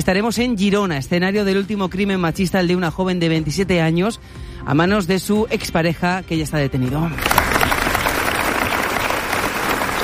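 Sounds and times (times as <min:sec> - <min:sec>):
speech: 0:00.0 - 0:07.5
applause: 0:07.2 - 0:10.0.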